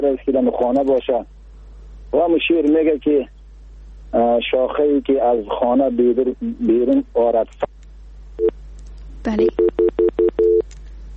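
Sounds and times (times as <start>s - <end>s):
speech: 0.0s - 1.4s, 2.1s - 3.3s, 4.1s - 7.6s, 9.2s - 9.8s
low hum: 0.0s - 11.1s
telephone tones after a call is cut off: 9.4s - 10.6s.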